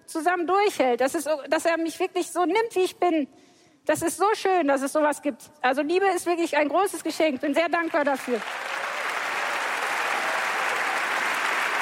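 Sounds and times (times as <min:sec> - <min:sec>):
speech: 0:00.1 - 0:08.8
audience applause: 0:08.3 - 0:11.8.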